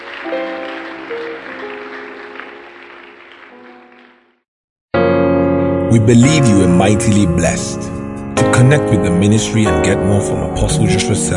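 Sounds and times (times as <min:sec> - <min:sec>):
audience applause: 0:00.0 - 0:04.4
speech: 0:05.9 - 0:08.0, 0:08.6 - 0:11.3.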